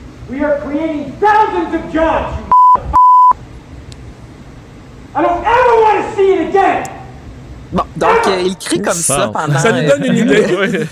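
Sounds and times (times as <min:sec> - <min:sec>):
speech: 0:00.3 - 0:02.9, 0:05.2 - 0:06.9, 0:07.7 - 0:10.9
censorship bleeps: 0:02.5 - 0:03.4
laughter: 0:08.8 - 0:10.9.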